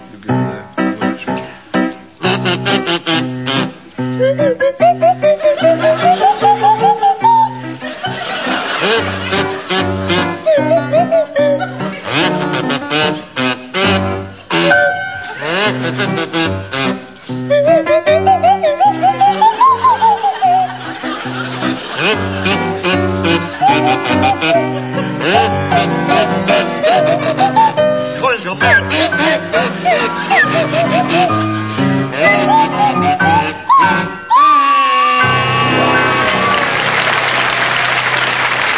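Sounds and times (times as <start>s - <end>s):
kazoo playing a tune: 0.3s - 38.6s
Swanee whistle playing a tune: 2.3s - 7.8s, 16.7s - 20.8s, 29.9s - 38.2s
laughter: 4.2s - 13.3s, 15.1s - 16.7s, 17.5s - 38.6s.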